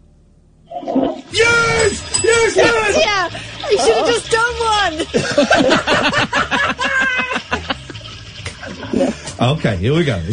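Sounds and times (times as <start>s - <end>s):
toilet flushing: 0.7s - 10.3s
speech: 2.5s - 6.9s, 9.4s - 10.3s
laughter: 4.9s - 8.1s.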